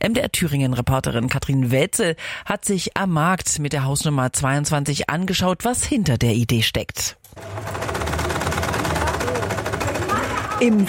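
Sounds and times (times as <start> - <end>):
speech: 0.0 - 7.9, 10.6 - 10.8
sewing machines running: 7.3 - 10.8.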